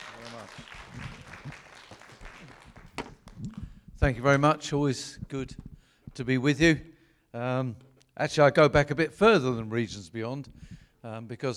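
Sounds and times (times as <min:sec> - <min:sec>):
audience applause: 0:00.0 - 0:03.4
speech: 0:00.4 - 0:01.6, 0:04.0 - 0:11.5.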